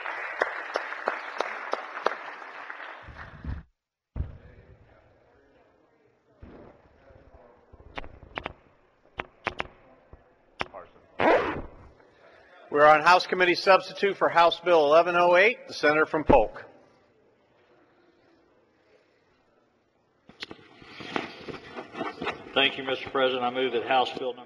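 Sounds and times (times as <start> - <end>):
applause in a legislative chamber: 0.0 - 3.5
speech: 12.8 - 16.7, 22.6 - 24.4.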